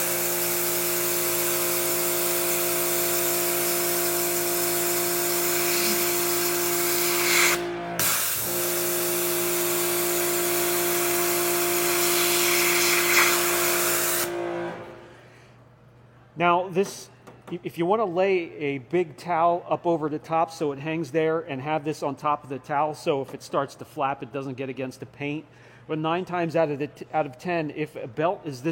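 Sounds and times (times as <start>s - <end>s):
pressurized water spraying: 0.0s - 14.3s
speech: 16.4s - 28.7s.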